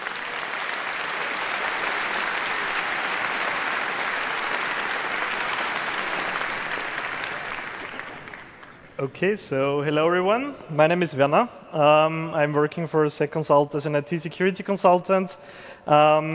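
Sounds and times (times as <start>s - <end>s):
audience applause: 0.0s - 8.9s
speech: 9.0s - 16.3s.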